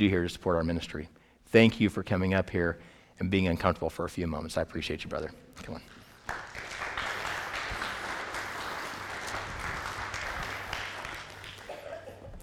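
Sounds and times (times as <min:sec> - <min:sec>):
speech: 0:00.0 - 0:06.4
audience clapping: 0:05.9 - 0:12.4.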